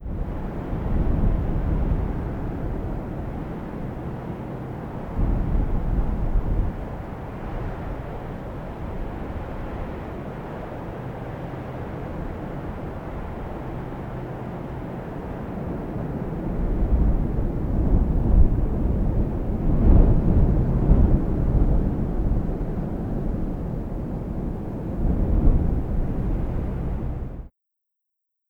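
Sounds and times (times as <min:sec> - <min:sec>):
wind: 0:00.0 - 0:27.5.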